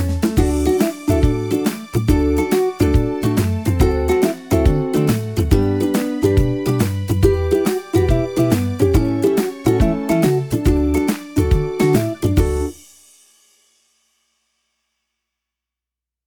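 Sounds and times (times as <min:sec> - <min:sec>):
happy ukulele background intro music: 0:00.0 - 0:12.8.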